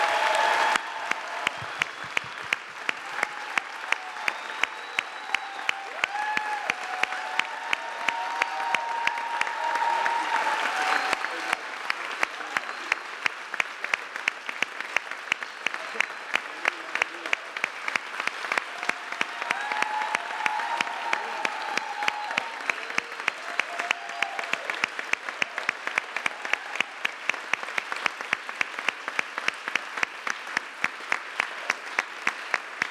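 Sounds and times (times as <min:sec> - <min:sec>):
faint voices and cheers: 0:00.0 - 0:13.4, 0:15.4 - 0:17.7, 0:18.3 - 0:27.3
crowd applause: 0:00.0 - 0:32.8.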